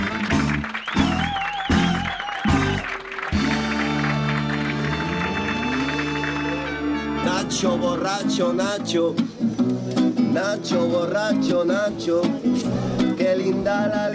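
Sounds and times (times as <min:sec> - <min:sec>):
loud applause: 0:00.0 - 0:07.4
speech: 0:07.6 - 0:09.7, 0:10.3 - 0:14.1.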